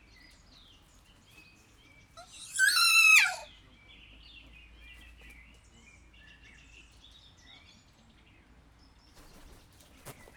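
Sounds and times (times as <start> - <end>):
captive kea giving a harsh screech in a zoo at Jászberény: 2.2 - 3.5.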